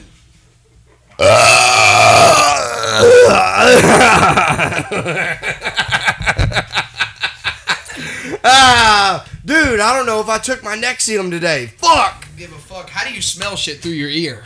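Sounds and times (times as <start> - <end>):
long loud croaking burp: 1.2 - 4.7
speech: 3.7 - 5.9, 8.5 - 14.4
quick rhythmic chuckling bursts: 3.7 - 8.6.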